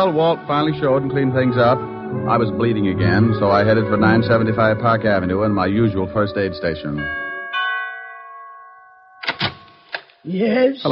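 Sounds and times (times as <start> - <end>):
speech: 0.0 - 7.2, 10.2 - 10.9
doorbell chiming: 2.1 - 9.3.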